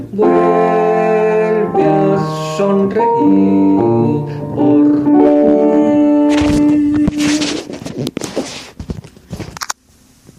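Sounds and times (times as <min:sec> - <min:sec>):
sopranos singing: 0:00.0 - 0:07.5.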